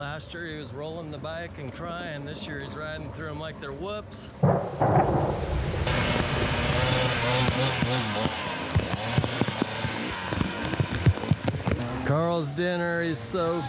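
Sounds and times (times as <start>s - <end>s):
speech: 0.0s - 8.5s, 12.1s - 13.6s
heavy rain: 4.4s - 11.8s.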